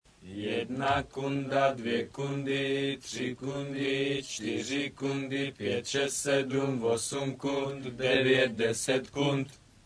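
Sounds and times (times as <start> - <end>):
hymn: 0.2 - 9.6.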